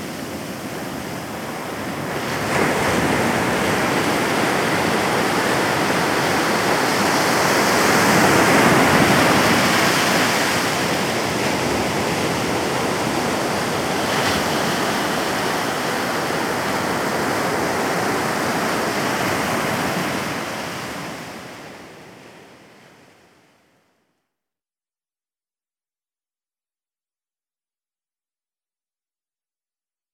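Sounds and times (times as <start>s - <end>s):
ocean surf at dusk: 0.0s - 23.5s.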